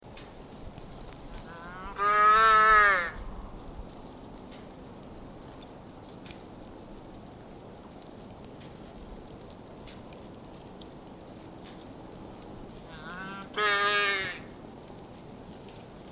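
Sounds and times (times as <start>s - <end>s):
muskox calf call: 1.5s - 3.2s, 12.9s - 14.5s.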